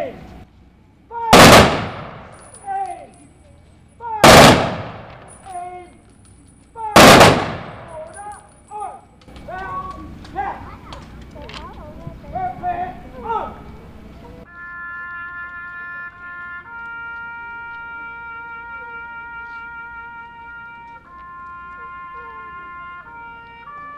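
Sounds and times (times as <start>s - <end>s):
ceremonial rifle volleys honoring the fallen on Iowa Flag Day in Knoxville, Iowa: 1.3s - 2.7s, 4.2s - 5.6s, 7.0s - 8.4s.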